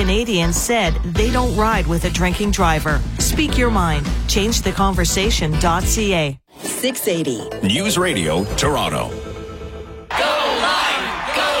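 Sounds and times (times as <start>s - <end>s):
speech: 0.0s - 9.3s
crowd cheering with whoops and yells: 10.1s - 11.5s.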